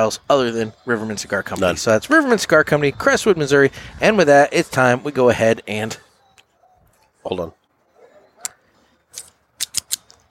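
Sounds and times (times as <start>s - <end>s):
speech: 0.0s - 6.0s, 7.2s - 7.6s
Casa Cuevas Patrimonio cigar being cut with a cigar cutter: 8.4s - 10.2s.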